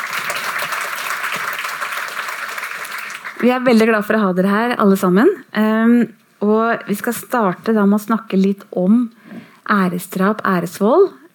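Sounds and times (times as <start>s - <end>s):
audience applause: 0.0s - 3.5s
speech: 3.4s - 11.2s.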